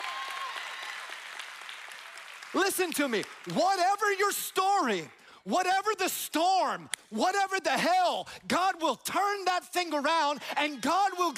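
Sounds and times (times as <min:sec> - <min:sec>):
audience clapping and applauding: 0:00.0 - 0:04.2
speech: 0:02.5 - 0:11.3.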